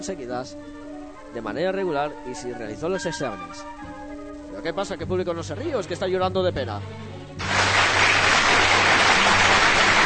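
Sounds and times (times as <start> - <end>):
speech: 0.0 - 7.5
audience applause: 7.4 - 10.0.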